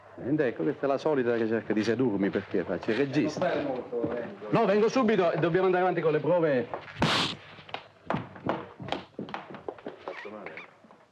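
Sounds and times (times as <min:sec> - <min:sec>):
speech: 0:00.2 - 0:07.4
slap impact: 0:07.0 - 0:07.4.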